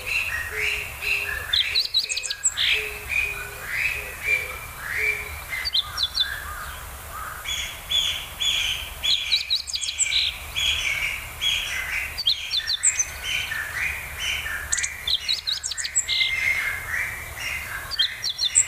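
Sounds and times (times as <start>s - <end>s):
meadow bunting twittering song: 0.0s - 18.6s.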